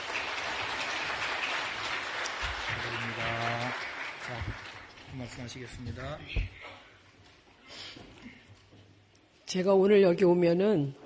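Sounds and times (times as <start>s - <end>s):
audience applause: 0.0s - 5.7s
speech: 5.2s - 6.8s, 9.5s - 11.0s.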